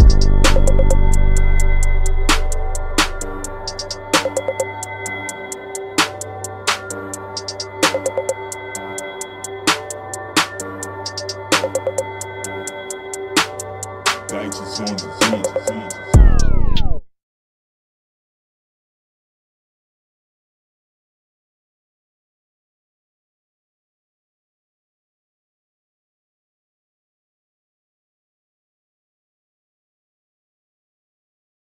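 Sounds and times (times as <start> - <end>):
instrumental music: 0.0 - 17.0.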